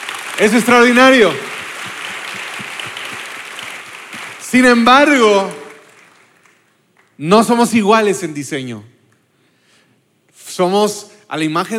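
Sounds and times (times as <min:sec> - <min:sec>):
crowd applause: 0:00.0 - 0:06.6
speech: 0:00.4 - 0:01.5, 0:04.5 - 0:05.6, 0:07.2 - 0:09.0, 0:10.6 - 0:11.7.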